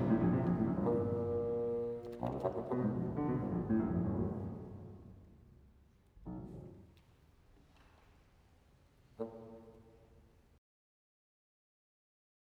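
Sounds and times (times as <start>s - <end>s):
musical trio: 0.0s - 5.4s.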